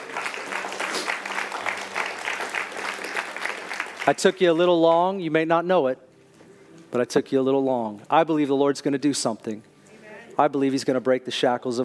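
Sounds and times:
audience clapping: 0.0 - 4.8
speech: 4.0 - 6.0, 6.9 - 9.7, 10.4 - 11.8.

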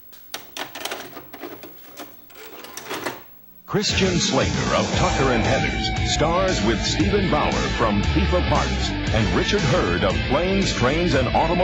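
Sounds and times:
VHS tape loading into a VCR: 0.0 - 3.5
speech: 3.7 - 11.6.

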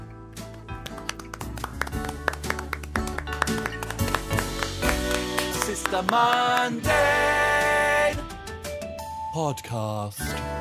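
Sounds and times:
applause: 0.4 - 7.0
speech: 5.9 - 7.4, 9.3 - 10.5.

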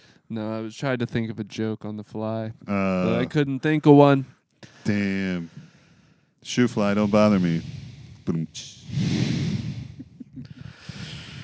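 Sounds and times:
speech: 0.3 - 5.7, 6.4 - 9.0
heavy breathing into a microphone: 4.6 - 11.4
sharp sniff: 7.0 - 11.4.

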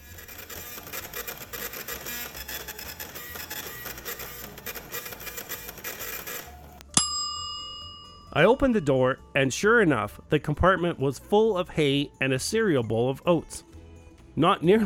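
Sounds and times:
food printer whirring and clicking: 0.0 - 6.8
bright ringing chime: 6.9 - 9.2
speech: 8.4 - 13.7, 14.4 - 14.8.

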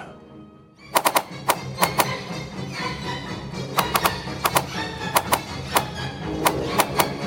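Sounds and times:
volley of arrows fired by archers: 0.9 - 2.2, 3.8 - 7.2.

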